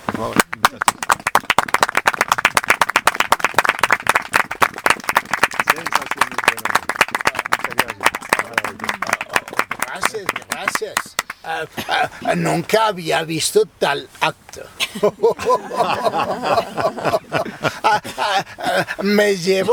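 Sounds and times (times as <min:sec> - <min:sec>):
audience clapping: 0:00.1 - 0:12.9
speech: 0:00.2 - 0:01.1, 0:10.1 - 0:17.4, 0:18.2 - 0:19.7
laughter: 0:05.6 - 0:19.7.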